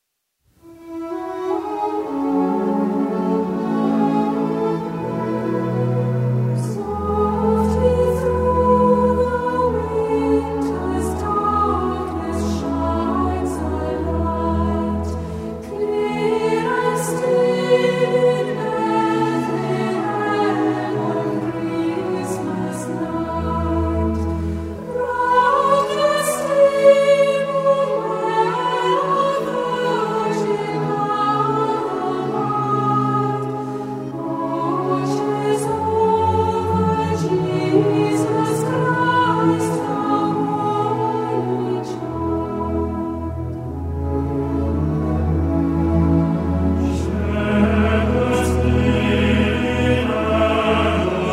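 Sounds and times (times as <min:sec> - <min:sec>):
French Christmas carol: 0:00.5 - 0:51.3.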